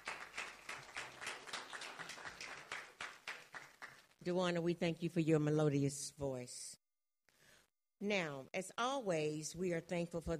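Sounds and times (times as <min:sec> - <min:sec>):
audience praise clap: 0:00.0 - 0:04.2
speech: 0:04.2 - 0:06.8, 0:08.0 - 0:10.3.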